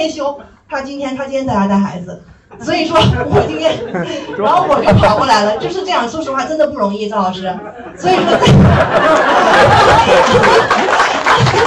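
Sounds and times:
speech: 0.0s - 10.8s
laughter: 2.5s - 6.1s, 7.4s - 11.6s
audience applause: 8.9s - 11.6s.

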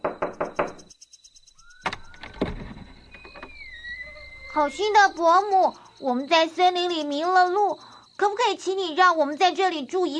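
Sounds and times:
knocking on a door: 0.0s - 0.9s
speech: 4.6s - 10.1s.

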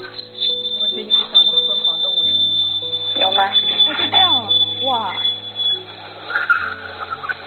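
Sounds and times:
sloth call: 0.0s - 7.4s.

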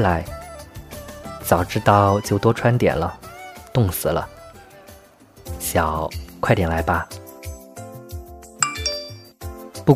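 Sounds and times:
speech: 0.0s - 0.4s, 1.4s - 3.2s, 3.8s - 4.4s, 5.6s - 7.2s
sharp clinking accents: 8.6s - 9.3s
text message notification chime: 8.6s - 9.4s.

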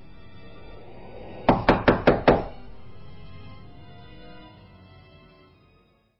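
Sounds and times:
knocking on a door: 1.5s - 2.5s.

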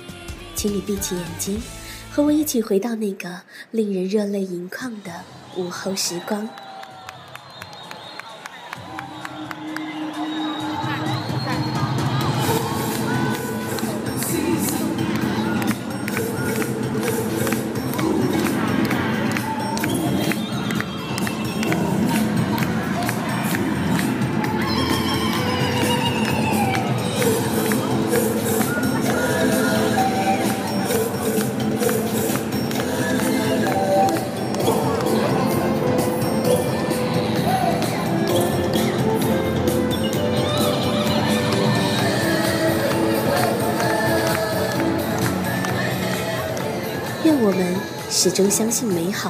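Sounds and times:
speech: 0.6s - 6.6s, 48.3s - 49.2s
parade crowd cheering and chattering at theme park: 4.8s - 49.2s
loud festive music: 11.1s - 49.1s.

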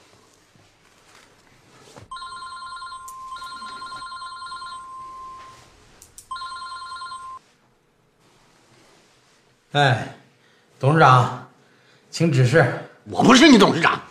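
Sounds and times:
telephone ringing with steady electronic tone: 2.1s - 7.5s
speech: 9.7s - 10.2s, 10.8s - 11.4s, 12.1s - 14.0s.

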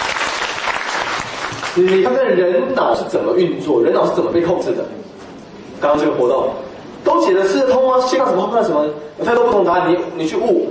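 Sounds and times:
audience applause: 0.0s - 1.9s
speech: 1.8s - 5.1s, 5.8s - 10.6s.

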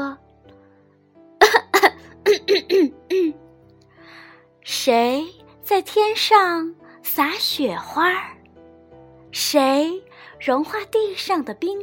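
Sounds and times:
person clearing throat: 1.4s - 3.4s
speech: 4.8s - 8.4s, 9.4s - 11.8s.

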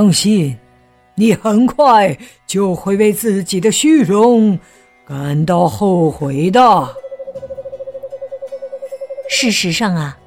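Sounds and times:
speech: 0.0s - 0.6s, 1.2s - 7.0s, 9.3s - 10.2s
owl trilling hoot: 6.9s - 9.8s.

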